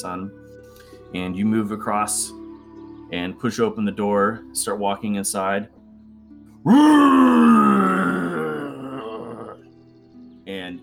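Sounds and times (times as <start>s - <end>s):
speech: 0.0s - 0.4s, 1.1s - 2.4s, 3.1s - 5.8s, 6.6s - 7.6s
person voicing a loud raspy monster roar: 6.7s - 9.6s.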